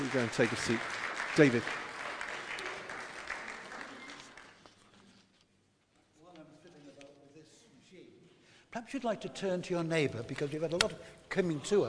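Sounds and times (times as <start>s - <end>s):
audience applause: 0.0s - 4.8s
speech: 0.1s - 1.8s, 8.9s - 11.8s.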